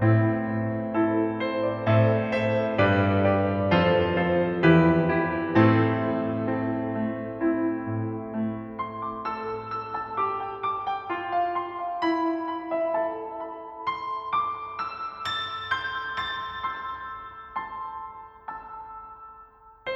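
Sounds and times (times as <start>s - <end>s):
welcome piano: 0.0s - 19.9s.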